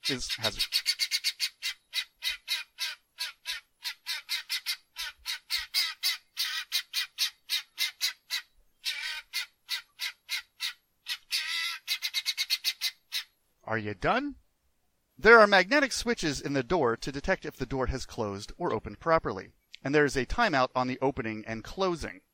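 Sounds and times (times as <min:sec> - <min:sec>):
chickens squawking in a coop: 0:00.0 - 0:13.3
speech: 0:00.1 - 0:00.9, 0:13.7 - 0:14.4, 0:15.2 - 0:22.3.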